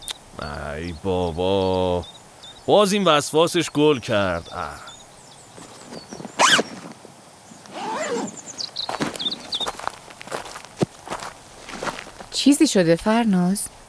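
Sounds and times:
speech: 0:00.4 - 0:04.9, 0:12.4 - 0:13.8
rustling and crunching of fabric and gear: 0:05.5 - 0:11.1
backpack being unzipped: 0:05.6 - 0:07.0, 0:07.7 - 0:09.5.

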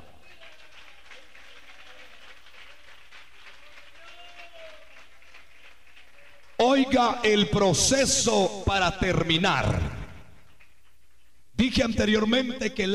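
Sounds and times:
audience clapping: 0:00.0 - 0:06.9, 0:10.4 - 0:10.9
speech: 0:06.6 - 0:10.0, 0:11.7 - 0:12.9.

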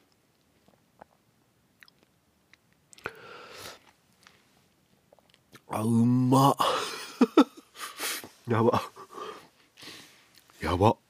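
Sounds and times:
person eating Valentine chocolate yogurt: 0:00.0 - 0:05.7
speech: 0:05.8 - 0:06.8, 0:08.5 - 0:08.9, 0:10.8 - 0:11.0
laughter: 0:06.8 - 0:07.7.

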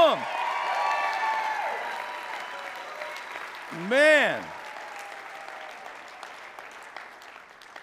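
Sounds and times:
crowd applause: 0:00.0 - 0:07.8
speech: 0:03.7 - 0:04.6
person letting out a rising and falling exclamation: 0:03.8 - 0:04.5.

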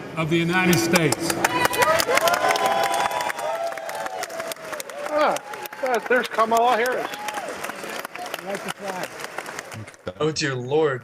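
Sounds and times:
speech: 0:00.2 - 0:02.9, 0:05.2 - 0:07.2, 0:08.4 - 0:09.2, 0:09.8 - 0:11.0
large crowd clapping in a chamber: 0:00.7 - 0:10.1
cheers and shouted voices: 0:01.0 - 0:09.0.

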